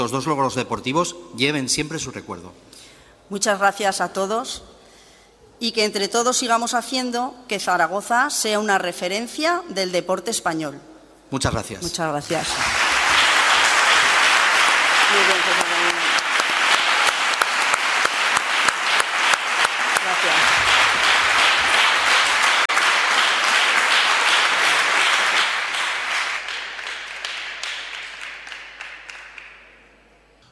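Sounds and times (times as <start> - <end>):
speech: 0.0 - 4.8, 5.6 - 12.8
large audience applause: 12.3 - 30.0.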